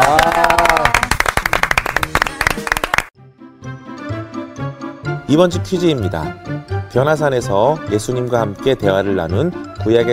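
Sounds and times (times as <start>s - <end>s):
audience clapping: 0.0s - 3.1s
soft tonal music with a gentle melodic rhythm: 2.2s - 10.1s
speech: 5.3s - 10.1s.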